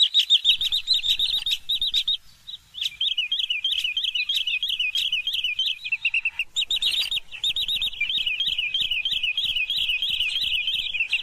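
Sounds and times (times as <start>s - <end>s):
green sandpiper calling: 0.0s - 11.2s.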